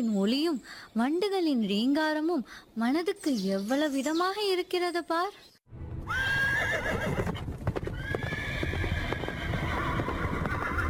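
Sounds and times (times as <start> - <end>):
speech: 0.0 - 5.5
horse whinnying and neighing: 6.1 - 10.8
horse-drawn chariot hoofbeats clip-clopping: 6.7 - 10.8.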